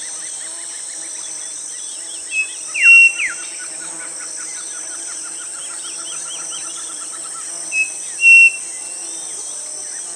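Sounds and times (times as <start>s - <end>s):
bird whistling calls: 2.3s - 3.5s, 7.8s - 8.7s.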